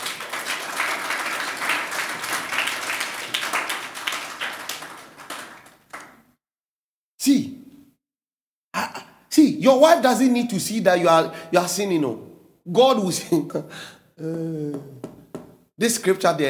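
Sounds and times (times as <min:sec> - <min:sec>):
audience clapping hands: 0:00.0 - 0:06.3
speech: 0:07.3 - 0:07.6, 0:09.6 - 0:15.1, 0:15.8 - 0:16.4.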